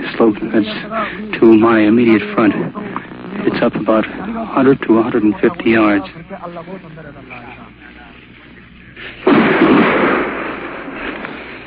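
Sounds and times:
speech: 0.2s - 7.4s
artillery shell bursting in a combat zone: 9.2s - 11.6s.

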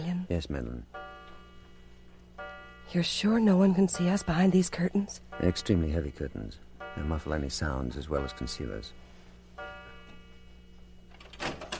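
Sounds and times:
speech: 0.3s - 1.0s, 2.9s - 9.1s
library door opening: 11.1s - 11.7s.

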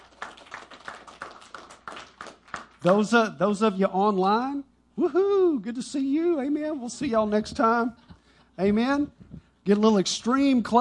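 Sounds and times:
audience applause for visitors: 0.0s - 2.8s
speech: 2.8s - 8.0s, 8.6s - 10.7s.

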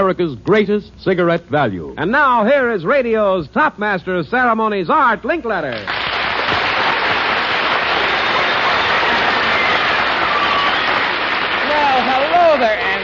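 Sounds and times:
speech: 0.1s - 6.6s
crowd applauding: 5.7s - 13.0s.

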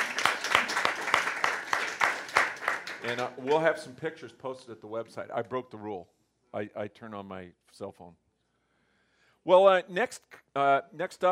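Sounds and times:
small group clapping for two guests: 0.0s - 4.0s
speech: 3.0s - 8.2s, 9.4s - 11.3s.

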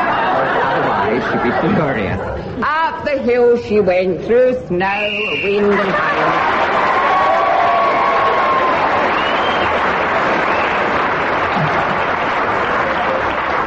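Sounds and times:
laughter: 0.0s - 2.5s, 5.5s - 6.7s, 11.4s - 13.3s
speech: 1.2s - 6.8s
whistles from audience: 5.0s - 5.7s, 9.1s - 9.8s, 10.4s - 11.0s
large audience clapping and cheering: 5.8s - 13.6s.

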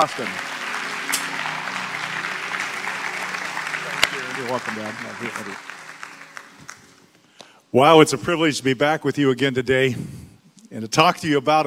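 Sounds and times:
speech: 0.0s - 0.5s, 4.1s - 5.7s, 7.7s - 11.6s
audience applause welcoming a speaker: 0.0s - 7.2s.

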